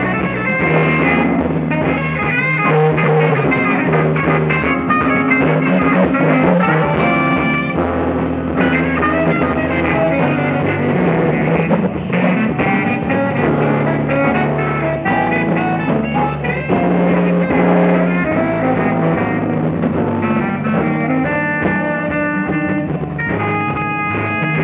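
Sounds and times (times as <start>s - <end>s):
jazz music at Thames festival: 0.0s - 24.6s.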